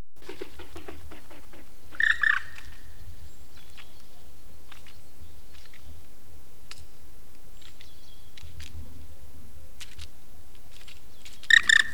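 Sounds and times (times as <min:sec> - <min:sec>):
black woodpecker loud plaintive ringing call: 0:00.2 - 0:08.4, 0:11.3 - 0:11.9.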